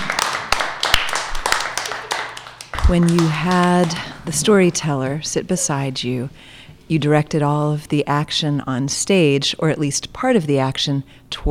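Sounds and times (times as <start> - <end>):
audience clapping after a storytelling performance on stage: 0.0 - 5.0
speech: 2.9 - 11.4.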